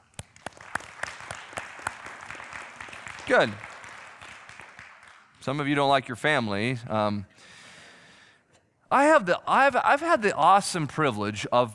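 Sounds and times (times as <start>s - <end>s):
audience clapping: 0.0s - 5.8s
speech: 3.3s - 3.7s, 5.4s - 7.6s, 8.9s - 11.7s.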